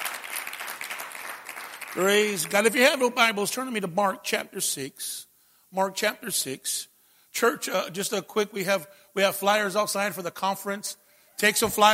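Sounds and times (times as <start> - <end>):
audience applauding: 0.0 - 2.4
speech: 2.0 - 11.9.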